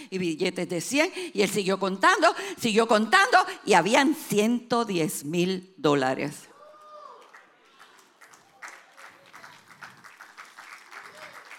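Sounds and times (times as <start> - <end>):
speech: 0.1 - 6.5
weak audience applause: 6.6 - 11.5.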